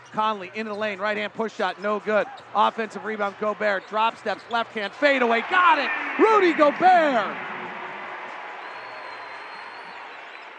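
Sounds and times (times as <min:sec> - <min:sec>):
speech: 0:00.1 - 0:07.5
arena crowd cheering after a basket: 0:04.8 - 0:10.5.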